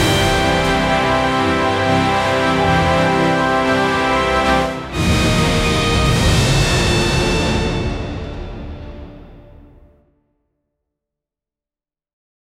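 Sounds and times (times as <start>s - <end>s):
heroic orchestral battle music: 0.0s - 10.0s.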